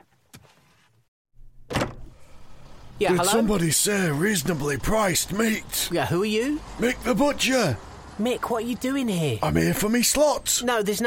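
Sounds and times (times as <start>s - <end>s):
door banging: 1.6s - 2.2s
speech: 3.0s - 11.0s.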